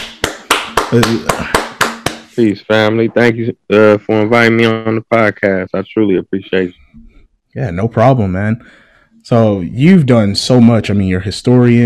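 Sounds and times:
hand claps: 0:00.0 - 0:02.5
speech: 0:00.9 - 0:01.6, 0:02.4 - 0:11.8.

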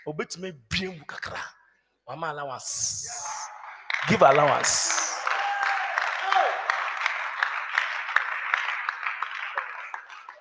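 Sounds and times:
speech: 0:00.0 - 0:03.3, 0:04.0 - 0:05.2
audience clapping: 0:03.3 - 0:10.4.

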